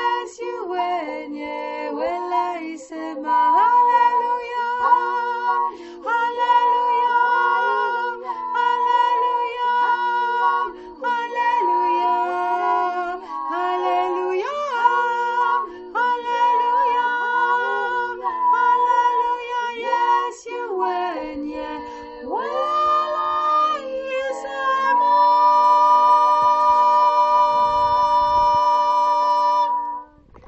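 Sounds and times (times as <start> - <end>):
second soprano singing a countermelody: 0.0 - 30.2.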